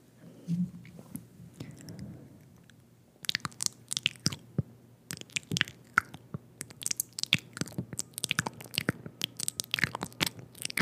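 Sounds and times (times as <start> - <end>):
intense wet mouth sounds: 1.6 - 4.5, 5.1 - 10.8.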